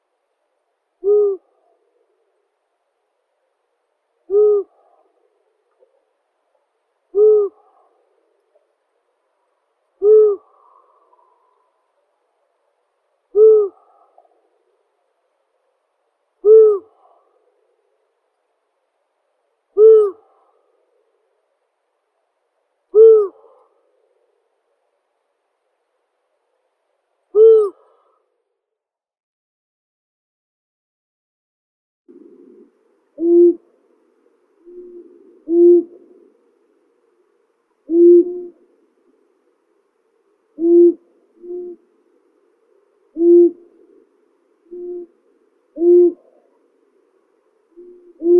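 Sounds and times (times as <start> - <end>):
long-eared owl Asio otus calling: 1.0 - 2.0, 4.3 - 5.9, 7.1 - 8.0, 10.0 - 11.7, 13.3 - 14.4, 16.4 - 17.4, 19.8 - 20.6, 22.9 - 23.7, 27.3 - 28.2, 32.2 - 33.8, 34.5 - 36.5, 37.8 - 38.8, 40.6 - 41.9, 43.1 - 46.7, 47.7 - 48.3.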